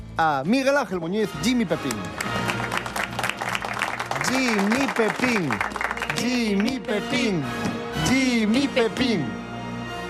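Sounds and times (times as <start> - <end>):
speech: 0.2 - 2.4, 4.3 - 9.4
audience applause: 1.9 - 7.0.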